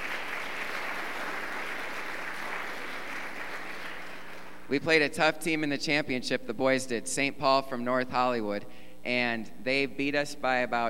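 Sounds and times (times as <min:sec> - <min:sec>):
audience applause: 0:00.0 - 0:04.7
speech: 0:04.7 - 0:10.8.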